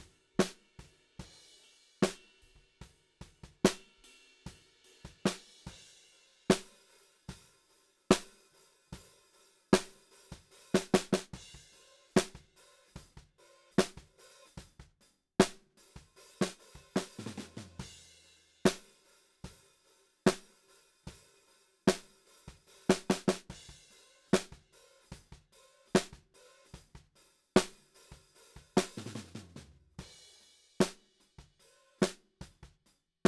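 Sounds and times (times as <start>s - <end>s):
snare drum: 0.0s - 0.7s, 2.0s - 2.4s, 3.4s - 4.0s, 5.0s - 5.8s, 6.5s - 6.8s, 8.1s - 8.4s, 9.8s - 19.6s, 20.3s - 21.2s, 21.9s - 33.2s.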